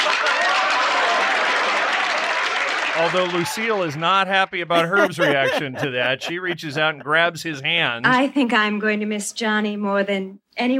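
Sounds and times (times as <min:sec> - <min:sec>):
applause: 0:00.0 - 0:06.4
laughter: 0:03.0 - 0:08.2
speech: 0:03.0 - 0:10.7.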